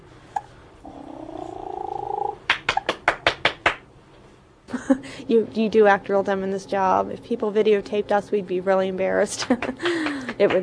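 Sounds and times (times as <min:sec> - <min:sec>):
person purring at baby: 0:00.8 - 0:02.4
person clapping at baby: 0:02.5 - 0:03.8, 0:09.4 - 0:10.6
speech: 0:04.9 - 0:10.6.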